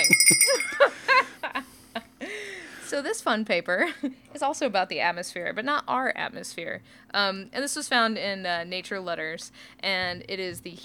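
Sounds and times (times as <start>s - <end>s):
hiking bear bell ringing: 0.0s - 0.9s
speech: 3.0s - 10.8s.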